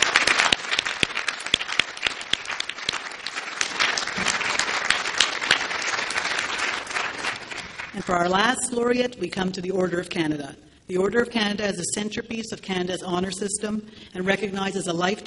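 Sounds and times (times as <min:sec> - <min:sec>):
audience applause: 0:00.0 - 0:08.1
speech: 0:08.0 - 0:15.2.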